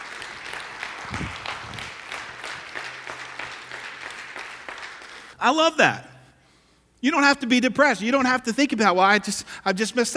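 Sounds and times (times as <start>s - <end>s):
audience applause: 0.0s - 5.3s
speech: 5.4s - 6.1s, 7.0s - 10.1s.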